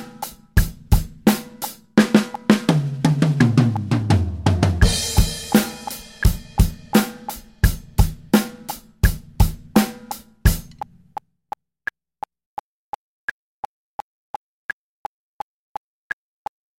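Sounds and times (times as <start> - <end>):
beginner drum fills at 85 BPM: 0.0 - 10.9.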